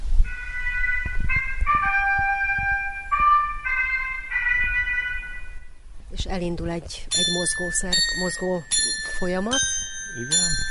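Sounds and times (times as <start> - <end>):
horn blown by mechanical clock figure: 0.3 - 5.8
speech: 6.3 - 10.6.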